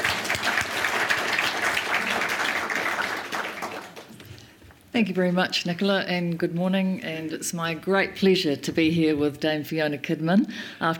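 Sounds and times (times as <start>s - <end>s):
crowd applauding: 0.0s - 4.2s
speech: 5.0s - 10.9s.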